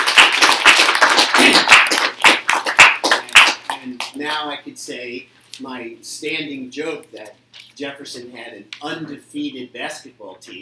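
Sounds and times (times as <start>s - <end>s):
audience round of applause: 0.0s - 3.7s
speech: 4.4s - 10.6s.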